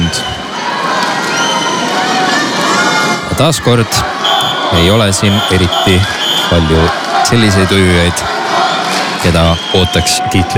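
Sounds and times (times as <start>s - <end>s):
home crowd cheering at a swimming championship: 0.0s - 10.5s
whistles: 0.1s - 0.5s, 1.3s - 1.9s, 4.2s - 6.6s, 9.4s - 10.2s
shrill shouts: 0.2s - 10.5s
speech: 3.4s - 8.4s, 9.2s - 10.5s.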